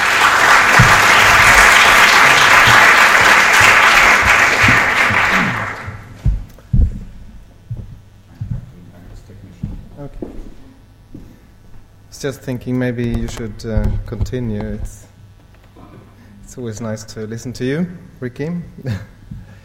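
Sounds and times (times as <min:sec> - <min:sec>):
audience applause welcoming a speaker to a talk: 0:00.0 - 0:06.2
speech: 0:12.2 - 0:15.1, 0:16.5 - 0:19.4.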